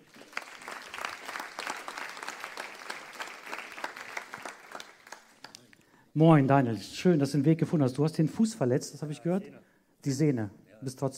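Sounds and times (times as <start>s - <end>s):
audience applause: 0.0s - 5.6s
speech: 6.2s - 11.1s.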